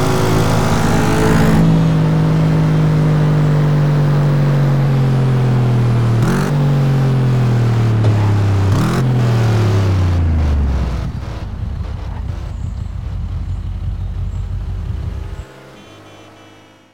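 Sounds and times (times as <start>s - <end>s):
Audi S4 engine: 0.0s - 16.9s.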